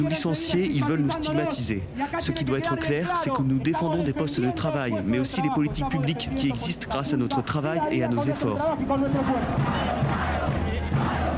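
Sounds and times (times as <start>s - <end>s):
speech: 0.0s - 10.3s
protesting union crowd chanting for a general strike: 8.9s - 11.3s.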